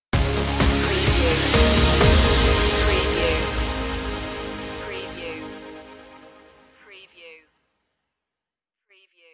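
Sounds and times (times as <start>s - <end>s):
music stinger: 0.2s - 6.8s.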